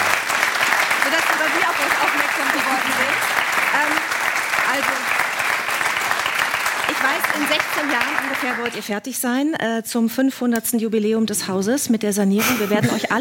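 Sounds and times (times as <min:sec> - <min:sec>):
applause: 0:00.0 - 0:09.0
speech: 0:01.1 - 0:05.2, 0:07.0 - 0:13.1.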